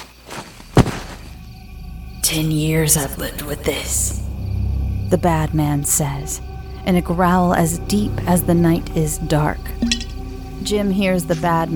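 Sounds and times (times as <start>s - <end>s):
heavy-set man falling to the ground: 0.0s - 1.3s
speech: 2.3s - 4.2s, 5.1s - 11.7s.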